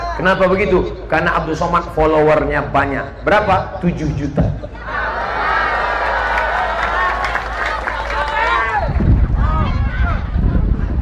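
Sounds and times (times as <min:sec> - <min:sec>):
speech: 0:00.2 - 0:04.8
crowd cheering and clapping: 0:04.8 - 0:10.9.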